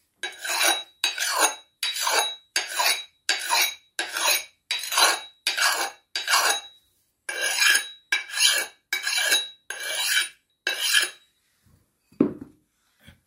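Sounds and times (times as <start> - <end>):
axe being sharpened on the other side: 0.2 - 6.7, 7.3 - 11.2.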